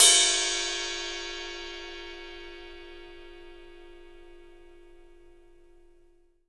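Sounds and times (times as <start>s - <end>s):
ride cymbal: 0.0s - 3.8s.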